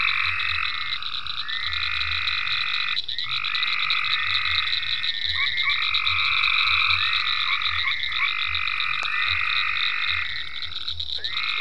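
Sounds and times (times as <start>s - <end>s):
frogs calling in ponds on a permaculture farm: 0.0s - 11.5s.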